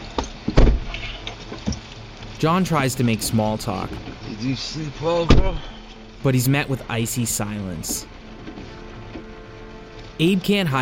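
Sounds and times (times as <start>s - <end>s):
truck door shutting: 0.4s - 1.0s, 5.3s - 5.7s
speech: 2.4s - 8.1s, 10.2s - 10.8s.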